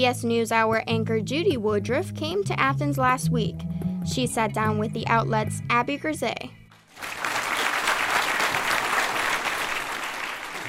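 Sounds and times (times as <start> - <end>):
speech: 0.0 - 7.1
thunderous applause of a standing ovation: 6.9 - 10.6.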